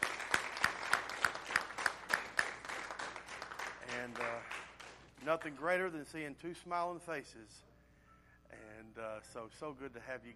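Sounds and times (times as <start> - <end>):
round of applause: 0.0 - 5.1
speech: 5.2 - 7.7, 9.0 - 10.3.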